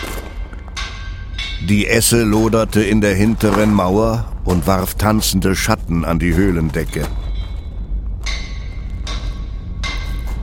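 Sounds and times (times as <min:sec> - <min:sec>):
hammer striking metal on an anvil: 0:00.0 - 0:04.6, 0:06.9 - 0:10.4
speech: 0:01.6 - 0:07.2.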